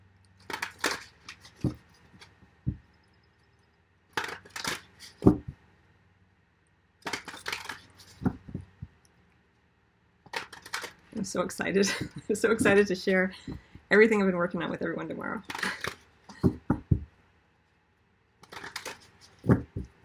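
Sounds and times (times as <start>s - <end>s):
tarot cards being shuffled: 0.4s - 2.8s, 4.2s - 5.6s, 7.0s - 8.9s, 10.3s - 11.1s, 15.4s - 17.0s, 18.4s - 20.0s
speech: 11.3s - 15.7s.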